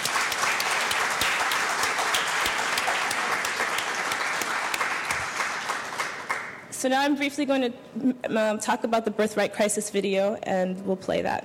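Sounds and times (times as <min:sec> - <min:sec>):
audience applause for panelists: 0:00.0 - 0:06.6
speech: 0:06.8 - 0:11.4.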